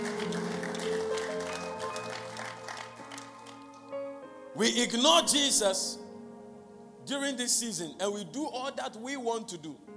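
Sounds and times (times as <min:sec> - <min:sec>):
audience clapping: 0:00.0 - 0:03.9
speech: 0:04.6 - 0:06.0, 0:07.1 - 0:09.9.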